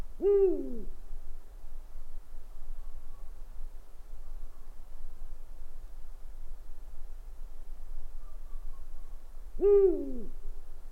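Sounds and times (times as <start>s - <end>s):
owl hooting: 0.2s - 1.0s, 9.6s - 10.4s.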